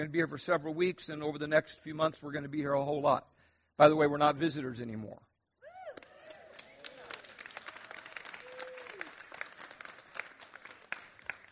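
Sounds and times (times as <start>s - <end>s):
speech: 0.0s - 5.3s
audience applauding: 6.0s - 11.4s.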